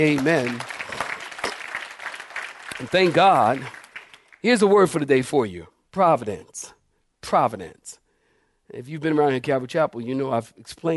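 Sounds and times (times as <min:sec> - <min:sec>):
speech: 0:00.0 - 0:00.7, 0:02.8 - 0:03.8, 0:04.4 - 0:08.0, 0:08.7 - 0:10.9
audience clapping hands: 0:00.0 - 0:05.1.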